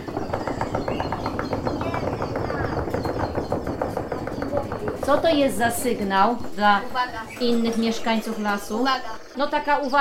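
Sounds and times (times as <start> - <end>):
people drumming in imitation of a woodpecker: 0.0 - 5.5
speech: 5.1 - 9.9.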